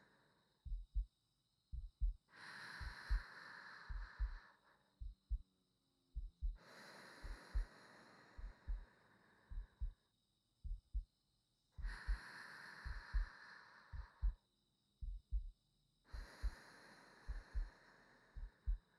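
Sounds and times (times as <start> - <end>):
new wife's heartbeat: 0.6 - 3.3, 3.9 - 5.5, 6.2 - 6.6, 7.2 - 7.7, 8.4 - 8.9, 9.5 - 10.0, 10.6 - 11.1, 11.8 - 12.2, 12.8 - 13.3, 13.9 - 14.4, 15.0 - 16.6, 17.3 - 17.7, 18.3 - 18.9
sleeping breathing: 2.3 - 4.8, 6.6 - 10.0, 11.8 - 14.4, 16.1 - 18.9.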